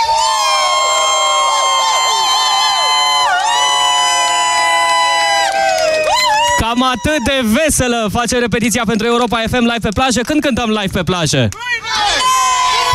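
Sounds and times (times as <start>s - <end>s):
large crowd cheering on the beach: 0.0s - 7.9s, 11.5s - 12.9s
speech: 6.7s - 12.3s.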